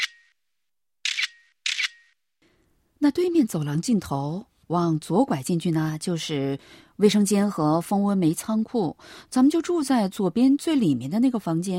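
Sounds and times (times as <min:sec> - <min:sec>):
phone camera shutter clicks: 0:01.1 - 0:02.1
speech: 0:03.0 - 0:11.7.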